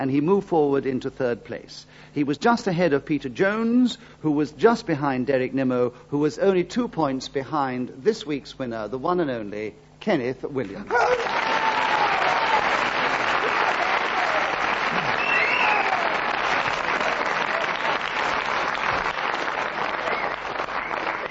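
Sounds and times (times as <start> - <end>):
speech: 0.0 - 11.2
whoops and cheers: 10.9 - 16.2
large studio audience applause: 10.9 - 21.2.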